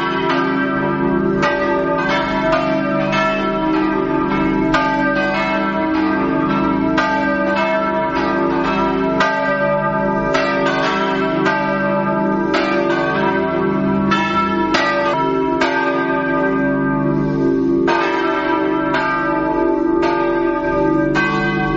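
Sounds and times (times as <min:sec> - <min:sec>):
bells ringing: 0:00.0 - 0:21.7.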